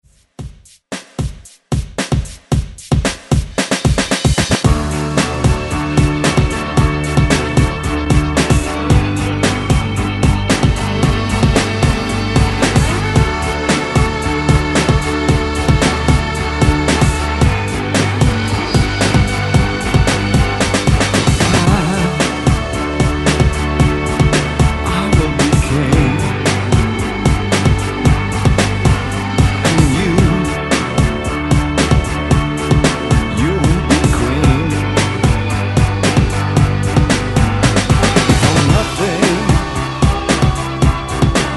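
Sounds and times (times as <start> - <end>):
1970s style drum loop: 0.1 - 41.5.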